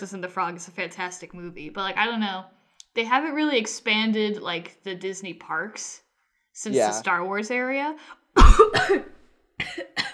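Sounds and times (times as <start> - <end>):
speech: 0.0 - 6.0, 6.6 - 10.1
coughing after choking: 8.4 - 10.1.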